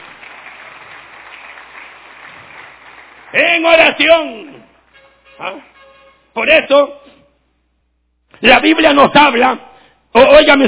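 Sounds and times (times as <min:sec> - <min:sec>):
audience applause: 0:00.0 - 0:03.7
speech: 0:03.3 - 0:04.5, 0:05.4 - 0:05.7, 0:06.4 - 0:07.1, 0:08.4 - 0:10.6.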